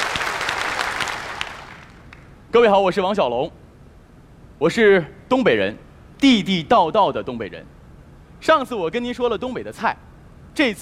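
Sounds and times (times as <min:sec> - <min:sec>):
audience applause: 0:00.0 - 0:02.0
speech: 0:02.5 - 0:03.6, 0:04.6 - 0:07.8, 0:08.4 - 0:10.0, 0:10.6 - 0:10.7.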